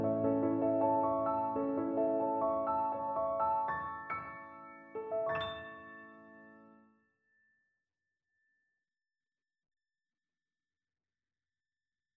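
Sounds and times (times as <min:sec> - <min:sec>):
piano prelude: 0:00.0 - 0:06.9.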